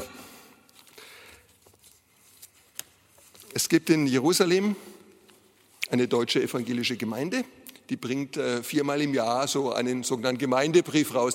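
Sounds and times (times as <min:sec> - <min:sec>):
rummaging through papers: 0:00.7 - 0:03.6
speech: 0:03.6 - 0:04.9, 0:05.9 - 0:11.3.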